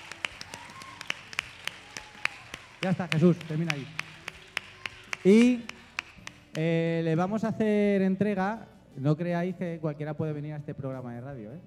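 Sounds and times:
sparse clapping from a small audience at a women's sport event: 0.0s - 6.8s
speech: 2.8s - 4.0s, 5.2s - 5.8s, 6.6s - 11.6s.

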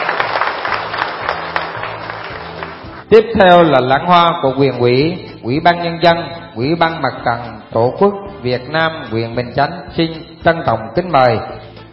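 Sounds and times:
congregation clapping at a Buddhist summer retreat closing ceremony in Binh Chanh district, Ho Chi Minh City: 0.0s - 3.1s
speech: 3.1s - 11.6s.

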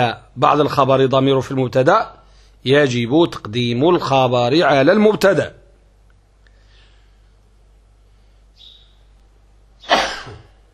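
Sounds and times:
speech: 0.0s - 5.6s
sneeze during a lesson on Arabic grammar: 9.8s - 10.6s.

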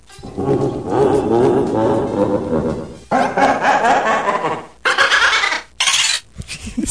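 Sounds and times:
sped-up roaring cackle of a video game character: 0.3s - 5.8s.

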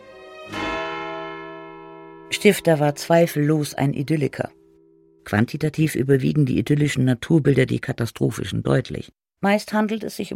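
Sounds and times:
single stroke of a church tower bell: 0.1s - 5.3s
speech: 2.4s - 4.6s, 5.3s - 10.3s.

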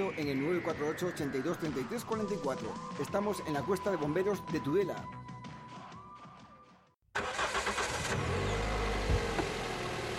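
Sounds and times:
speech: 0.0s - 5.2s
car engine starting: 7.1s - 10.1s.

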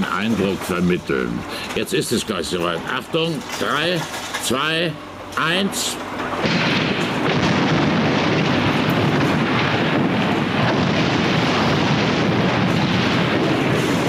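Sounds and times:
speech: 0.0s - 6.6s
demolition blast of chimney and house: 6.3s - 14.0s.

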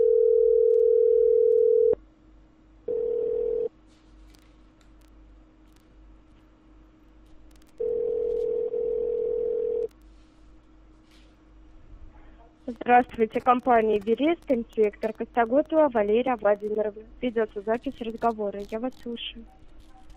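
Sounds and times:
ringing tone of an outgoing telephone call to a collection company: 0.0s - 2.0s, 2.9s - 3.7s, 7.8s - 9.9s
speech: 12.8s - 19.6s.

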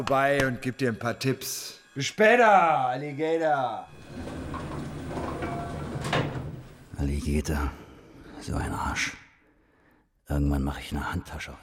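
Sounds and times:
speech: 0.0s - 4.3s, 7.0s - 7.8s, 8.4s - 9.2s, 10.3s - 11.6s
sliding door opening: 3.9s - 7.4s.

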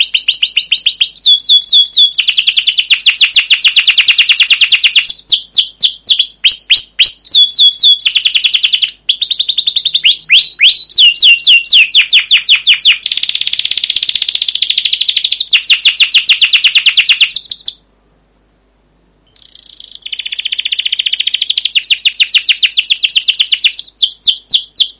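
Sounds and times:
canary singing with long rolling song: 0.0s - 17.9s, 19.3s - 24.9s.

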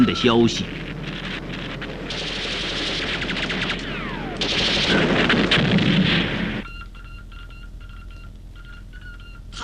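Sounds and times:
speech: 0.0s - 0.9s
constant rumbling battle din: 0.0s - 6.7s
heavy artillery booms: 1.0s - 6.7s
rapid bursts of battle gunfire: 2.0s - 6.6s.

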